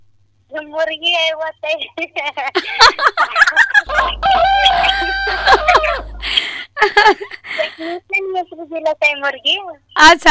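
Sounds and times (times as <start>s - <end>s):
people talking: 0.5s - 10.3s
laughter: 2.6s - 8.0s
rooster crowing: 3.8s - 6.4s
chickens clucking: 3.8s - 6.6s.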